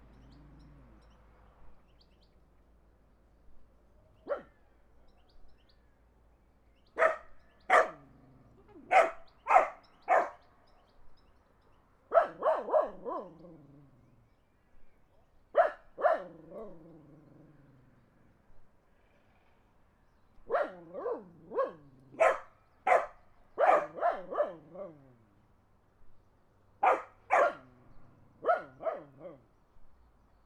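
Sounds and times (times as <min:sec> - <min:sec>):
dogs barking in the country: 0:04.2 - 0:04.6, 0:07.0 - 0:08.1, 0:08.8 - 0:10.4, 0:12.1 - 0:13.6, 0:15.6 - 0:16.8, 0:20.5 - 0:25.0, 0:26.8 - 0:27.7, 0:28.4 - 0:29.4.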